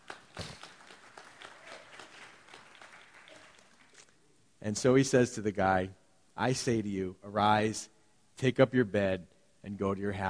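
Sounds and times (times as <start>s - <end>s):
audience applause: 0.0s - 4.0s
speech: 4.6s - 10.2s.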